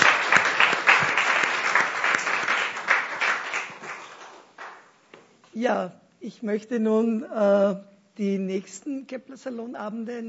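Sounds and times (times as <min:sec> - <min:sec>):
audience applause: 0:00.0 - 0:04.9
speech: 0:05.6 - 0:10.2.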